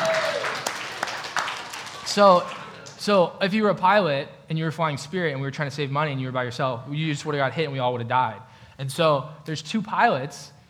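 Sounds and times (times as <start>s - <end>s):
audience applause: 0.0s - 3.0s
speech: 2.1s - 10.6s.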